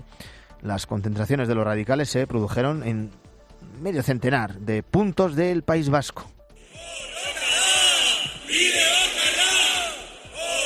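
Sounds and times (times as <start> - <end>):
speech: 0.6 - 3.2, 3.8 - 6.4
crowd shouting a protest chant: 6.6 - 10.6.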